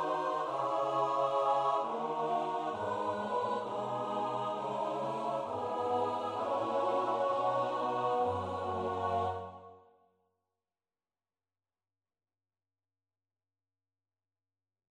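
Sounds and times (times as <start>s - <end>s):
soprano chorale melody: 0.0s - 9.7s.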